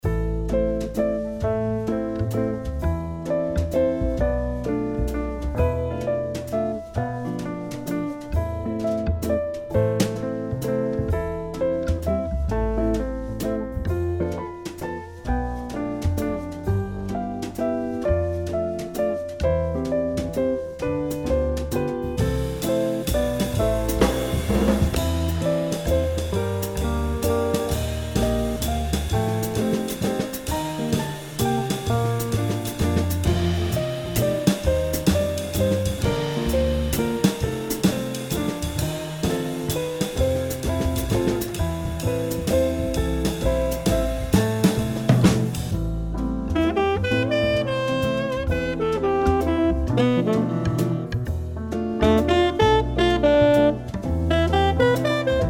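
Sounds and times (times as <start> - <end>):
waltz music: 0.1 - 55.4.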